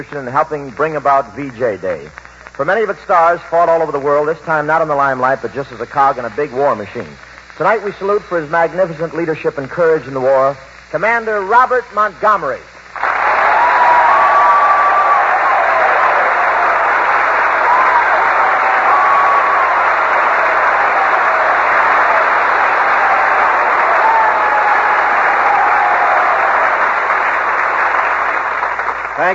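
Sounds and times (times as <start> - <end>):
speech: 0.0 - 13.1
applause from a large audience: 13.0 - 29.3.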